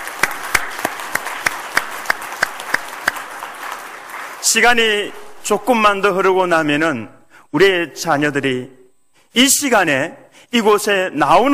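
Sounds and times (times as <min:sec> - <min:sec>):
audience applauding: 0:00.0 - 0:05.0
speech: 0:04.5 - 0:11.5.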